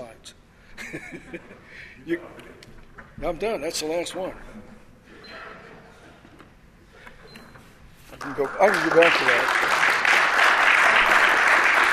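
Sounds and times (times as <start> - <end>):
speech: 0.2 - 5.4, 8.1 - 9.7
audience clapping: 8.1 - 11.9.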